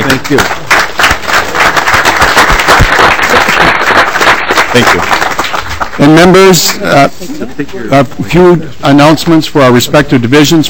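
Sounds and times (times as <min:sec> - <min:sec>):
room full of people applauding: 0:00.0 - 0:06.8
speech: 0:00.3 - 0:00.6, 0:04.7 - 0:05.3, 0:06.0 - 0:10.6.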